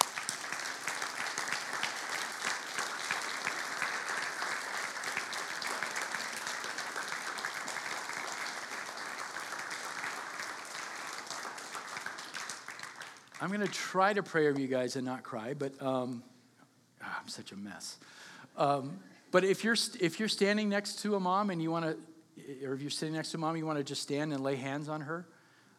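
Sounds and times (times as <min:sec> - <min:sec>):
audience clapping: 0:00.0 - 0:14.7
speech: 0:13.4 - 0:16.3, 0:17.3 - 0:25.4.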